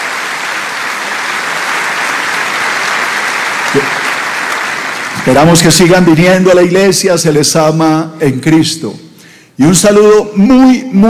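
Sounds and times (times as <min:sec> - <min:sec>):
audience's welcoming applause: 0:00.0 - 0:06.0
speech: 0:03.7 - 0:04.1, 0:05.2 - 0:09.0, 0:09.6 - 0:11.0.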